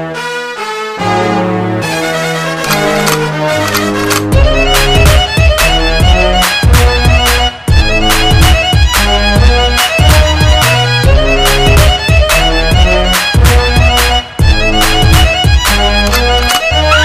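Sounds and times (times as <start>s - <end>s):
quirky violins playing: 0.2s - 17.0s.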